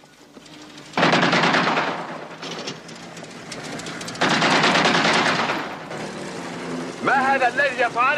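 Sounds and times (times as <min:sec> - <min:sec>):
warning shots: 0:01.0 - 0:02.7, 0:04.2 - 0:05.9
speech: 0:07.4 - 0:08.1.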